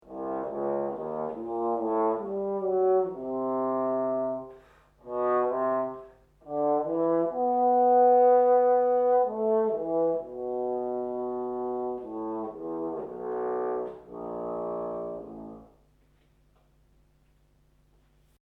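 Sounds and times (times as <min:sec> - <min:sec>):
trombone: 0:00.0 - 0:16.0.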